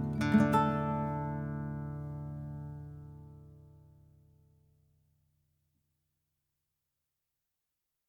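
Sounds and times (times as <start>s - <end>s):
ambient relaxing inspirational guitar music: 0.0s - 3.6s.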